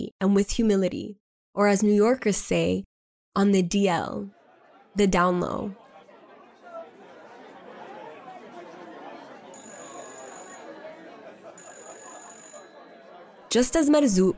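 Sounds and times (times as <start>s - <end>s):
speech: 0.2s - 4.4s, 5.0s - 5.8s, 13.5s - 14.3s
laughter: 4.2s - 14.3s
telephone ringing: 9.4s - 14.0s.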